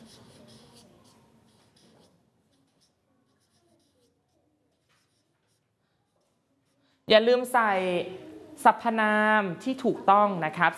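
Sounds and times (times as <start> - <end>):
pencils scratching on paper as schoolchildren write in a Thai classroom: 0.0 - 7.0
speech: 7.1 - 10.7.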